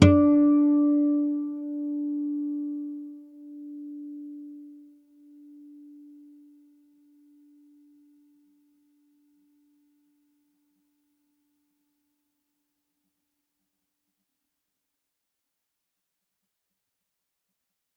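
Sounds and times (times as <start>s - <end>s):
clean D harmonics: 0.0s - 3.0s.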